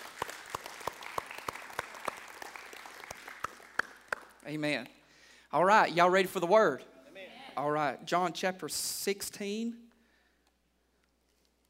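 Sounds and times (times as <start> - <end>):
audience clapping hands: 0.0 - 4.7
speech: 4.5 - 6.9, 7.6 - 9.8.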